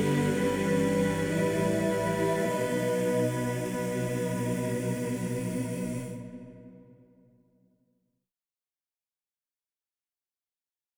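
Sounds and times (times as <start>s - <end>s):
a cappella singing: 0.0s - 7.2s.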